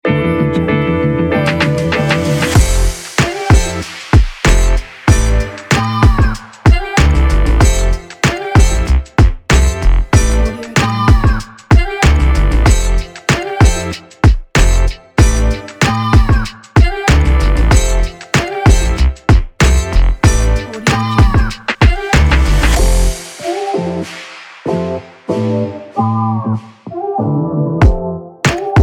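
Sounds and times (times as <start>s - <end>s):
upbeat vlog hip hop music: 0.0s - 28.8s.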